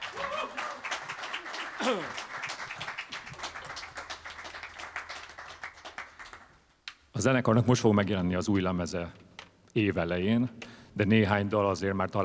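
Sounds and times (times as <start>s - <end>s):
crowd applause: 0.0s - 6.6s
speech: 1.8s - 2.3s, 7.2s - 12.2s.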